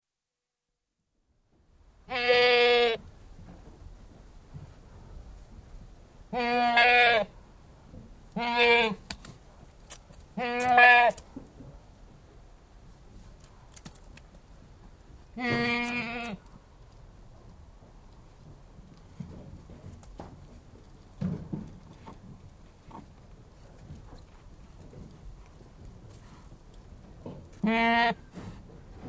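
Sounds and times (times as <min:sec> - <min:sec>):
Anglo-Nubian goat bleating outdoors: 0:02.1 - 0:03.0, 0:06.3 - 0:07.3, 0:08.4 - 0:09.0, 0:10.4 - 0:11.2, 0:15.4 - 0:16.4, 0:27.6 - 0:28.3.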